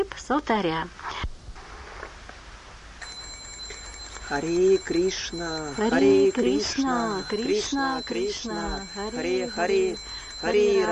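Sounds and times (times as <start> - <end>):
speech: 0.0 - 1.1, 4.3 - 10.9
small hand bell ringing at a Hare Krishna food offering: 3.0 - 10.9.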